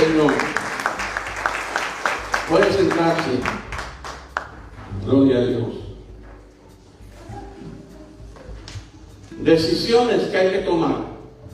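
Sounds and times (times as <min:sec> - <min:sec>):
audience applause: 0:00.0 - 0:04.7
speech: 0:02.5 - 0:03.7, 0:05.0 - 0:05.8, 0:09.4 - 0:11.1.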